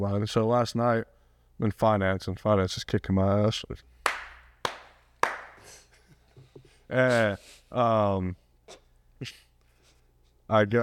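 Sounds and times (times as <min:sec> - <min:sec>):
speech: 0:00.0 - 0:03.9, 0:06.9 - 0:08.4, 0:09.2 - 0:09.4, 0:10.5 - 0:10.8
hand clapping: 0:04.0 - 0:05.8.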